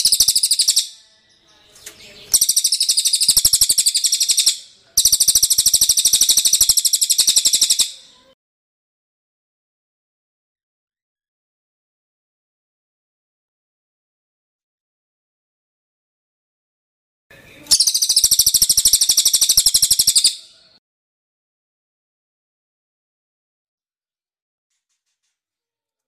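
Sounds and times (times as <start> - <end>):
bird singing a fast high-pitched chattering song: 0.0 - 8.4, 17.6 - 20.8.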